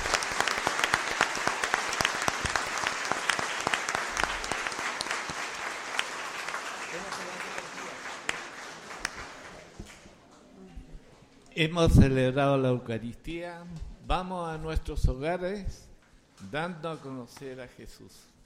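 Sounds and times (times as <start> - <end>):
audience applause: 0.0 - 10.1
speech: 11.6 - 18.3.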